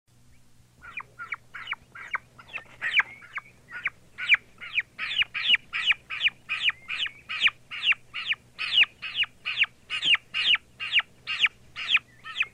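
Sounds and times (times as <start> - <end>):
turkey chicks peeping and chirping: 0.3 - 12.5.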